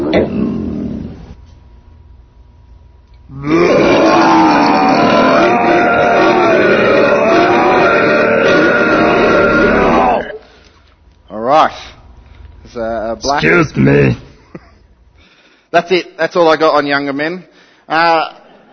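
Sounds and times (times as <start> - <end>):
speech: 0.1 - 0.4, 13.3 - 14.2, 15.7 - 18.4
loud burp played from a video: 3.3 - 10.5.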